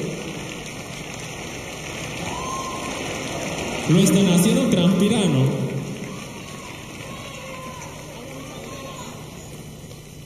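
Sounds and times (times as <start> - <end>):
applause: 0.0 - 10.0
speech: 3.9 - 5.6.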